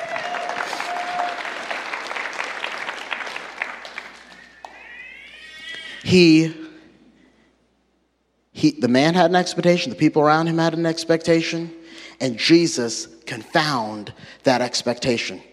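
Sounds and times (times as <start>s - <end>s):
audience clapping hands: 0.0s - 5.9s
speech: 6.0s - 6.6s, 8.6s - 15.5s.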